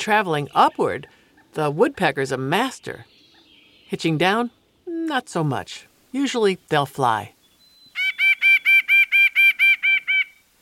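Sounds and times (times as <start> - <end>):
speech: 0.0 - 3.1, 3.9 - 7.4
nuthatch calling: 7.9 - 10.4.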